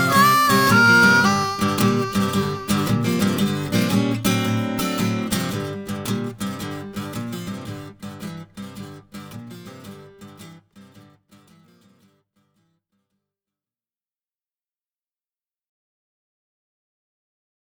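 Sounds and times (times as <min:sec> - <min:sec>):
blues harmonica bending notes in G: 0:00.0 - 0:05.1.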